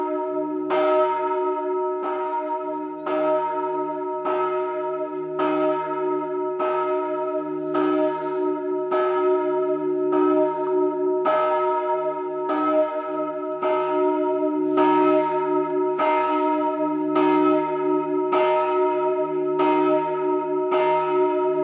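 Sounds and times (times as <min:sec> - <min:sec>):
bells: 0:00.0 - 0:21.6.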